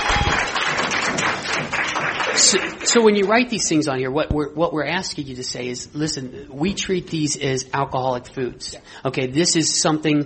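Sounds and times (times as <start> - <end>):
audience applause: 0.0 - 3.3
speech: 2.5 - 10.2.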